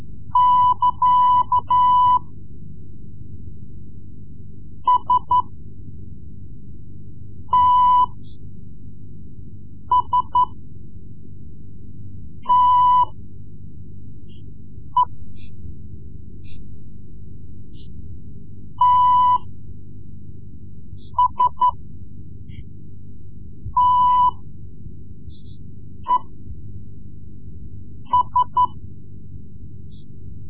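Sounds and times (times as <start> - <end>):
Morse code lessons: 0.3 - 2.2, 4.9 - 5.5, 7.5 - 8.2, 9.9 - 10.6, 12.5 - 13.2, 18.8 - 19.5, 21.1 - 21.8, 23.8 - 24.4, 28.1 - 28.8.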